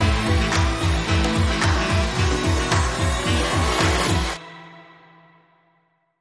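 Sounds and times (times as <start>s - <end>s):
disco music: 0.0s - 4.8s.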